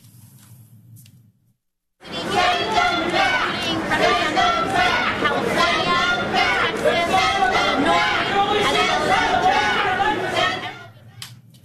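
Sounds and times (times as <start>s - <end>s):
protesters shouting at a press conference: 2.0s - 11.2s.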